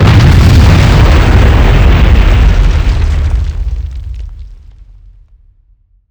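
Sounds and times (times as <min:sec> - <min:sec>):
explosions on the ground: 0:00.0 - 0:05.7.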